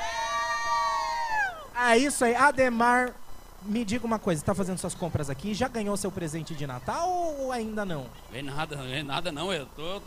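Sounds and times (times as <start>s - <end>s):
crowd shouting a cheer: 0.0s - 1.8s
speech: 1.8s - 10.0s.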